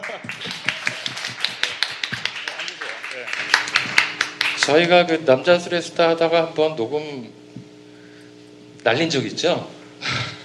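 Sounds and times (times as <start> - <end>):
audience applause: 0.0 - 5.4
speech: 4.7 - 7.4, 8.8 - 9.8.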